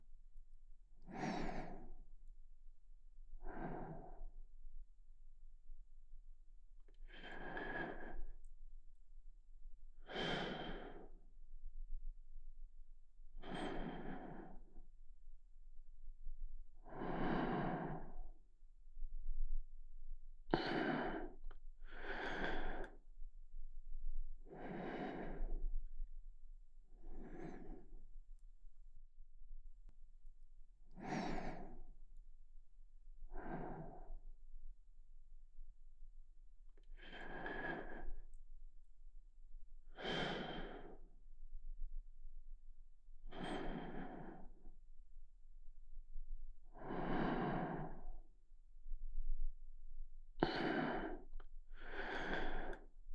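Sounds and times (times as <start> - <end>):
person breathing in sleep: 1.0 - 2.3, 3.3 - 4.5, 6.8 - 8.6, 10.0 - 11.4, 13.3 - 15.0, 16.2 - 18.4, 20.5 - 26.1, 26.9 - 28.2, 30.9 - 32.2, 33.2 - 34.3, 36.7 - 38.4, 39.8 - 41.9, 43.2 - 44.9, 46.1 - 49.6, 50.3 - 53.1.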